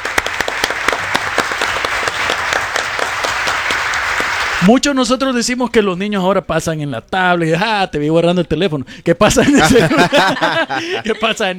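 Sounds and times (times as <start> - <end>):
audience applause: 0.0 - 4.7
speech: 4.6 - 11.5
laughter: 9.3 - 11.5.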